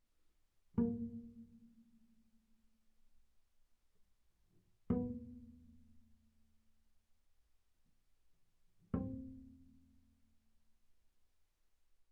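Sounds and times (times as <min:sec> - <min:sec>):
double bass pizzicato on the D string, B flat 3 and C4: 0:00.8 - 0:02.2, 0:04.8 - 0:06.4, 0:08.9 - 0:10.1.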